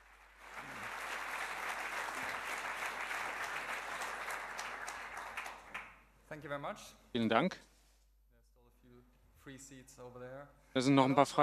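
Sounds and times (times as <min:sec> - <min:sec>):
audience applause: 0:00.0 - 0:06.0
speech: 0:06.4 - 0:07.7, 0:09.5 - 0:11.4.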